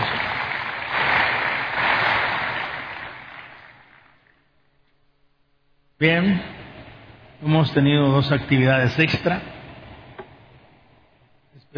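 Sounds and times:
crowd applauding: 0.0 - 4.3
speech: 6.0 - 6.6, 7.4 - 9.5.

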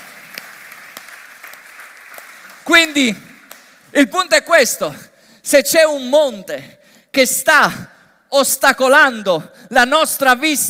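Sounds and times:
audience applause: 0.0 - 3.7
speech: 2.7 - 3.3, 3.9 - 10.6.

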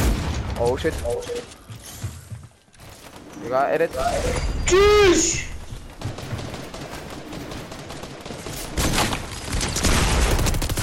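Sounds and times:
speech: 0.6 - 1.7, 3.4 - 5.5
automatic gunfire from an Asgard weapon in Fortnite: 6.0 - 10.8.

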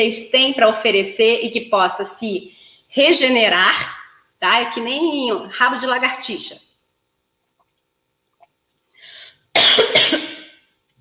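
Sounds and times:
speech: 0.0 - 6.6
harsh coughing after choking: 9.6 - 10.6.

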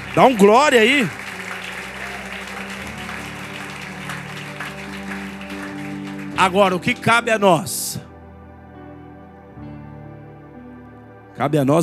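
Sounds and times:
audience applauding: 0.0 - 7.6
speech: 0.2 - 1.2, 6.4 - 7.8, 11.4 - 11.8.

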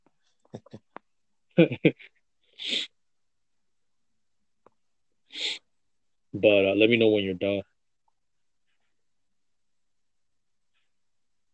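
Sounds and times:
speech: 1.6 - 2.9, 6.3 - 7.7
sniffs: 2.6 - 3.0, 5.3 - 5.7.

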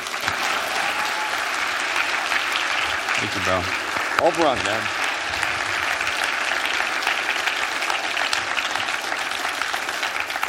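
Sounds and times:
audience applauding a speaker: 0.0 - 10.4
speech: 3.2 - 5.0.

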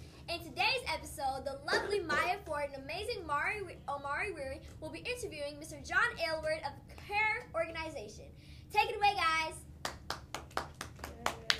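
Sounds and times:
speech: 0.9 - 9.7
hands clapping: 9.8 - 11.5.

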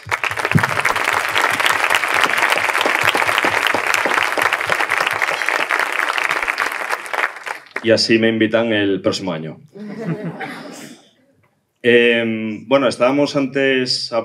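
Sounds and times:
audience applause: 0.0 - 7.9
speech: 7.8 - 10.6, 11.8 - 14.2
laughter: 9.8 - 11.2.

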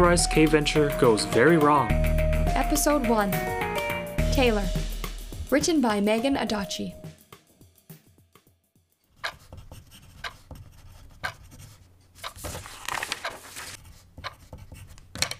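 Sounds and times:
speech: 0.0 - 2.1, 2.7 - 3.6, 4.4 - 4.8, 5.5 - 7.0
pencils scratching on paper: 9.1 - 15.2
pencil taps: 9.2 - 12.6, 14.1 - 15.3.

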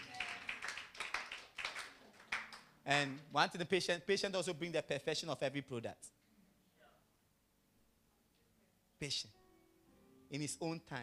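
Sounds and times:
audience clapping hands: 0.0 - 3.3
speech: 2.9 - 6.2, 9.0 - 9.4, 10.3 - 11.0.

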